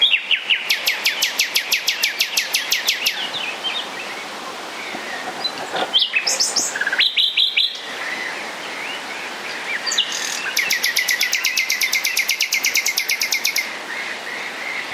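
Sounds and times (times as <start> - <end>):
common nightingale singing: 0.0 - 14.9.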